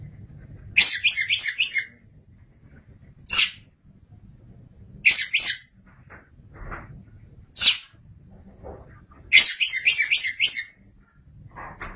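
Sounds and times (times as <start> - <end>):
Oriental magpie-robin rasping song: 0.8 - 2.0, 3.3 - 3.6, 5.0 - 5.7, 7.6 - 7.9, 9.3 - 10.8.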